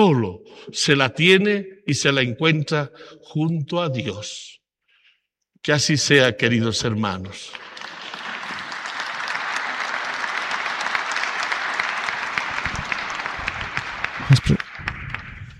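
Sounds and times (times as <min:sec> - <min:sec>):
speech: 0:00.0 - 0:04.6, 0:05.6 - 0:07.7
audience applauding: 0:07.5 - 0:15.5.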